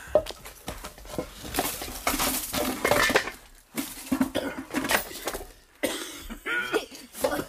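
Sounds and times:
debris clattering and clinking as it is shifted: 0.1s - 5.8s
person coughing from dust while rubble is cleared: 4.3s - 4.8s, 5.8s - 7.4s.

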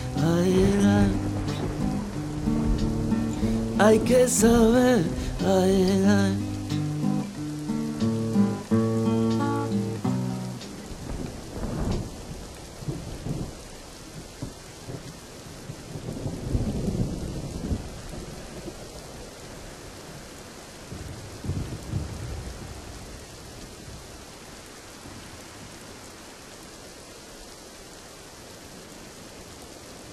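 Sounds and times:
deep rolling rumbles of thunder: 0.0s - 5.4s, 10.8s - 18.9s, 20.9s - 24.0s
musical phrase: 0.0s - 11.1s
steady hissing rain: 0.0s - 30.1s
speech: 3.8s - 6.5s.

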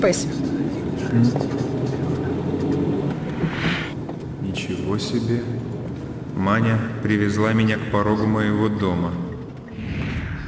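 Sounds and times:
speech: 0.0s - 1.6s, 4.6s - 5.7s, 6.4s - 9.2s
car engine inside a moving car: 0.6s - 4.0s.

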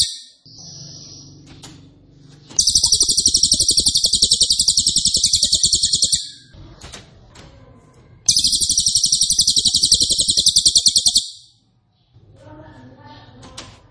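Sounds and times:
Cililin trilling: 0.0s - 1.3s, 2.6s - 6.5s, 8.3s - 11.5s.

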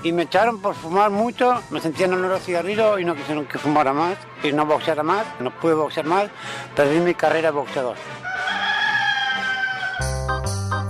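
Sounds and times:
speech: 0.0s - 8.3s
rooster crowing: 8.2s - 10.2s.

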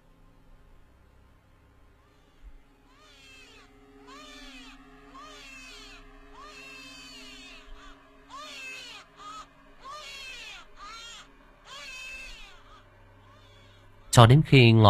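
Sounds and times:
child crying from inside a box: 2.1s - 14.0s
speech: 14.2s - 14.8s.

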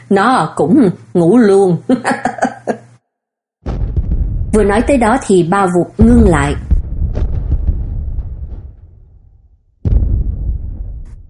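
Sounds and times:
speech: 0.1s - 2.4s, 4.6s - 6.7s
artillery shell explosion: 3.6s - 5.4s, 6.0s - 11.2s.

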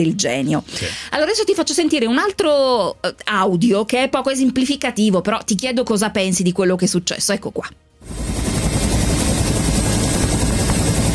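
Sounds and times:
speech: 0.0s - 8.2s
helicopter flying: 8.0s - 11.1s.

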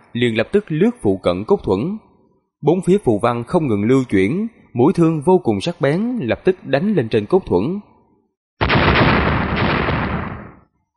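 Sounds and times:
speech: 0.1s - 7.9s
loud explosions: 8.6s - 10.7s.

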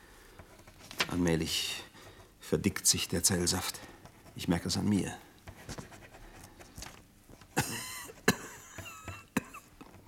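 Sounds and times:
speech: 1.1s - 1.9s, 2.5s - 5.8s
harsh sharp coughs: 7.5s - 9.8s.

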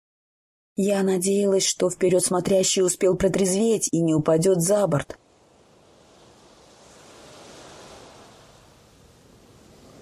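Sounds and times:
speech: 0.8s - 5.2s
ocean waves crashing around a ship: 5.2s - 9.9s
strong wind at sea around a ship: 5.2s - 9.9s.

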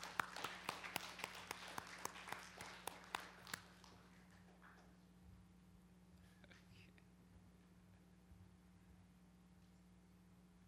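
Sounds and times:
audience applause welcoming dancers: 0.0s - 4.1s.

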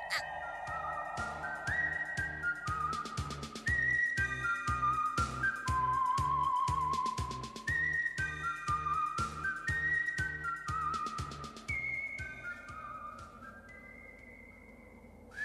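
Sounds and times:
rhythmic pulsing accompaniment: 0.0s - 3.7s
person whistling a song: 0.0s - 15.4s.

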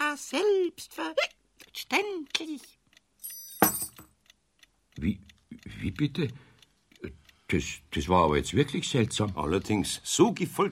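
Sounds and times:
speech: 0.2s - 2.8s, 5.0s - 6.4s, 7.0s - 10.7s
keys jangling: 3.2s - 4.1s.

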